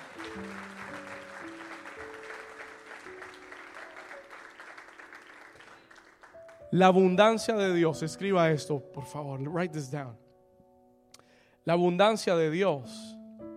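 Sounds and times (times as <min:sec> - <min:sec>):
audience applauding loudly: 0:00.0 - 0:06.7
speech: 0:06.8 - 0:10.2, 0:11.7 - 0:13.2.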